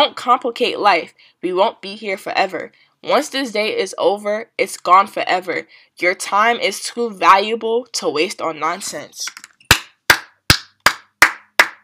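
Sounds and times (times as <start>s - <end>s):
speech: 0.0s - 9.5s
hand clapping: 9.4s - 11.8s.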